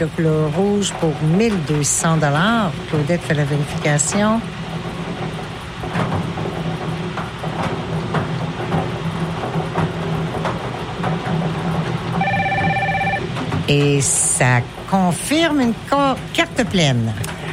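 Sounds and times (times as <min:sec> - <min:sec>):
speech: 0:00.0 - 0:04.8, 0:13.7 - 0:17.4
rumbling clattering background: 0:00.0 - 0:17.5
electronic telephone ring tone: 0:12.2 - 0:13.5.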